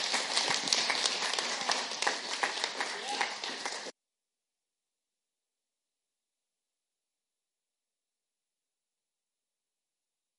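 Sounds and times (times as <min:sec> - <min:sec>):
audience applause welcoming guests: 0:00.0 - 0:03.9.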